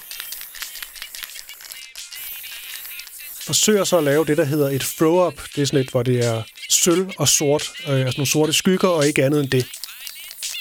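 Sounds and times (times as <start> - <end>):
spray paint can shaken hard, mixing ball rattling: 0.0 - 3.3, 9.0 - 10.6
speech: 3.5 - 9.8.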